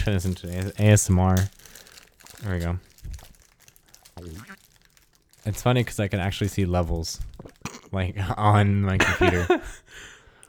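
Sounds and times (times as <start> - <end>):
speech: 0.0 - 1.8, 2.4 - 3.2, 4.2 - 4.6, 5.4 - 10.1
snack wrapper crinkling: 0.0 - 7.9.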